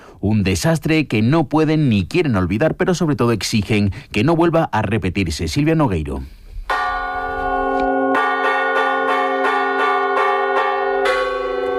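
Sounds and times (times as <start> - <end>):
speech: 0.2 - 6.4
church bells of the Iglesia de Las Médulas ringing a fire alarm: 6.7 - 11.7.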